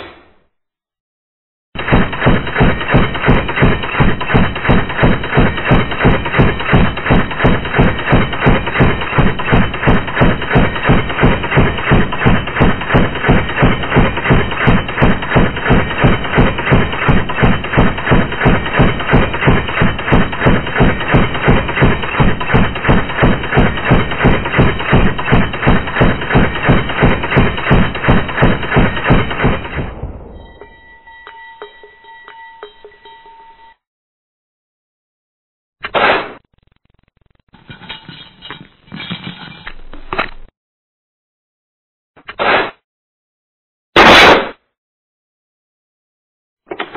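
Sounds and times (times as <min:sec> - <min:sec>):
gunshot: 0:01.8 - 0:30.7, 0:35.8 - 0:36.4, 0:42.4 - 0:42.8, 0:44.0 - 0:44.7.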